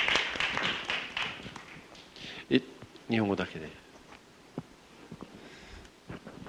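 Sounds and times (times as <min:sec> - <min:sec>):
audience hand clapping: 0:00.0 - 0:02.2
speech: 0:02.5 - 0:03.8.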